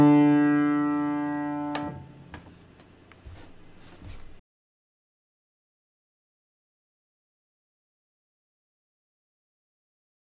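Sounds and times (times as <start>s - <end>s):
tenor melody: 0.0s - 2.1s.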